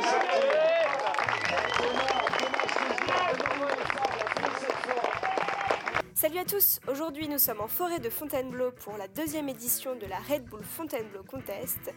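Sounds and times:
crowd applause: 0.0 - 6.0
speech: 6.3 - 11.9.

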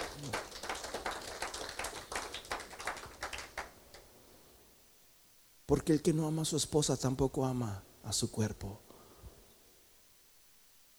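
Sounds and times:
audience applause: 0.0 - 3.7
speech: 5.7 - 8.9.

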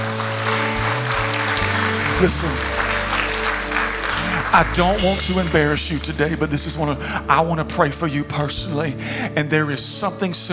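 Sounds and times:
audience applause: 0.0 - 6.0
speech: 2.2 - 2.7, 4.5 - 10.5.

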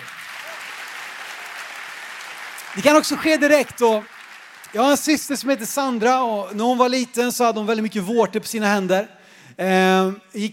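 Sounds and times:
audience applause: 0.0 - 6.0
speech: 2.8 - 4.1, 4.7 - 10.5.

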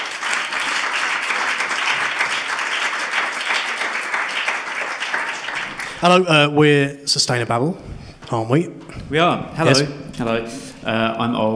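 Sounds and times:
audience applause: 0.0 - 6.4
speech: 6.0 - 11.5.

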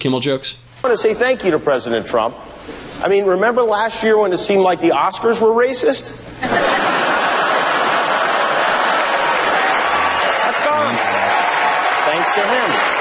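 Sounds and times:
speech: 0.0 - 7.1
laughter: 6.4 - 10.0
large audience applause: 7.0 - 12.9.

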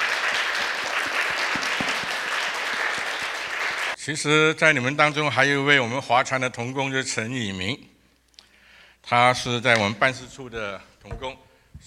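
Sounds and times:
audience applause: 0.0 - 4.0
speech: 4.0 - 7.9, 9.1 - 11.8.

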